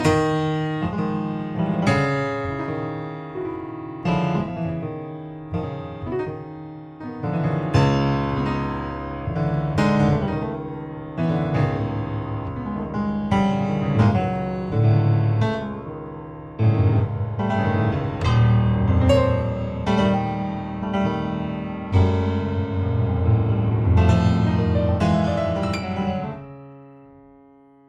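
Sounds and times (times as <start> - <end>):
solo piano: 0.0 - 27.8.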